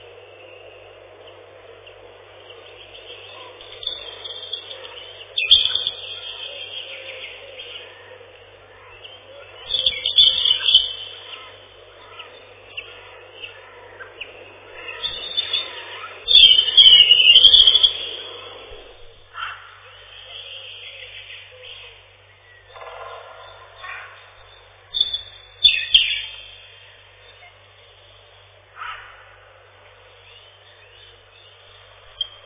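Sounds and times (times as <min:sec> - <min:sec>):
European robin Erithacus rubecula singing: 0:00.0 - 0:32.4.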